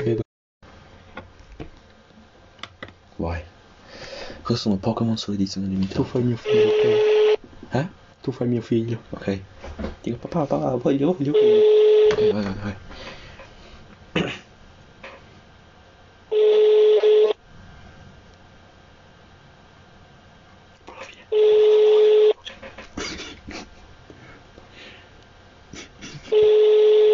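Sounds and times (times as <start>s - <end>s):
speech: 0.0s - 0.2s, 3.2s - 3.5s, 4.4s - 13.2s
telephone ringback tone: 6.5s - 7.4s, 11.3s - 12.4s, 16.3s - 17.4s, 21.3s - 22.4s, 26.3s - 27.1s.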